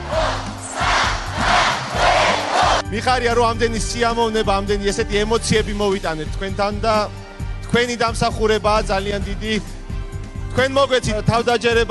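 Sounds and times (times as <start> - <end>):
crowd chanting at a national team celebration: 0.0 - 2.8
speech: 2.9 - 9.8, 10.5 - 11.8.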